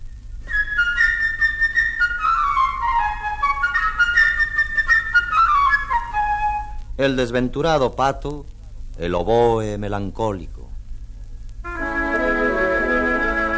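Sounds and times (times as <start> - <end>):
light playful flute melody: 0.4 - 7.0, 11.7 - 13.5
speech: 7.0 - 10.6.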